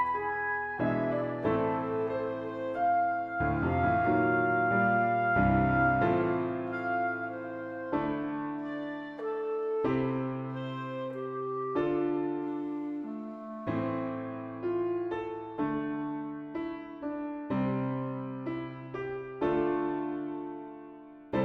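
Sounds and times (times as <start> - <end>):
clarinet: 0.0 - 17.6
piano: 0.0 - 21.4.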